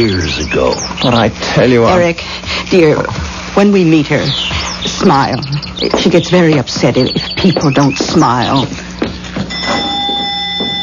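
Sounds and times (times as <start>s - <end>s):
speech: 0.0s - 9.8s
doorbell ringing: 9.5s - 10.8s.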